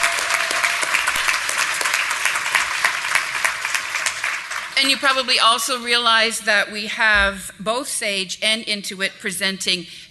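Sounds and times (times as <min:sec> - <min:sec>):
conference audience applause: 0:00.0 - 0:05.3
speech: 0:04.8 - 0:10.0.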